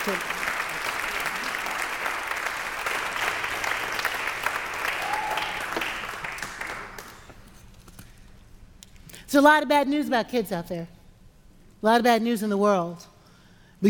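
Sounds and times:
speech: 0.0 - 0.4, 9.3 - 11.0, 11.8 - 13.1
audience applause: 0.0 - 7.3.

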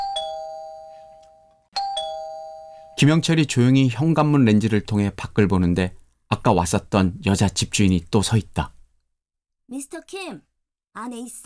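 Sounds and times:
doorbell ringing: 0.0 - 3.4
speech: 3.0 - 8.8, 9.7 - 11.4.

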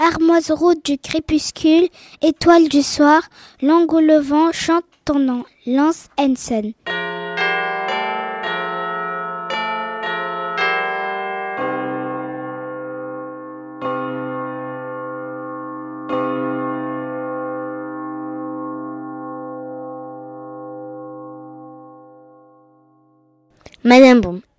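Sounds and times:
speech: 0.1 - 6.9
small bells ringing: 6.8 - 23.5.

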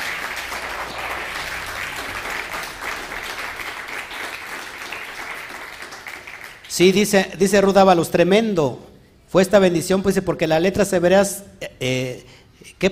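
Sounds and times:
audience applause: 0.0 - 6.7
speech: 6.8 - 12.9.

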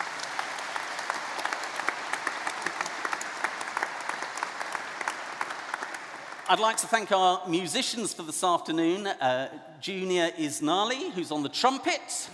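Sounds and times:
audience applause: 0.0 - 6.8
speech: 6.5 - 12.3.

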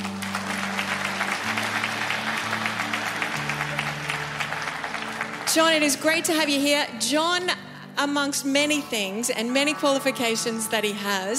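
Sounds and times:
audience clapping: 0.0 - 6.6
speech: 5.5 - 11.3.

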